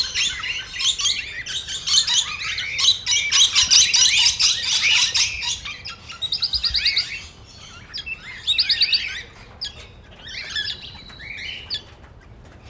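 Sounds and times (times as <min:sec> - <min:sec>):
parrots squawking and chattering at a zoo: 0:00.0 - 0:09.8.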